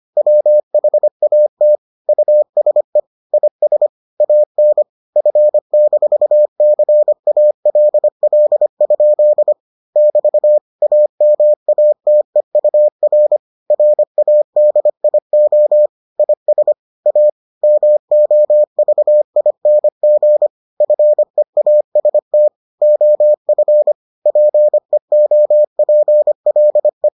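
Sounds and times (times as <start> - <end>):
morse code beeps: 0.2 - 27.1.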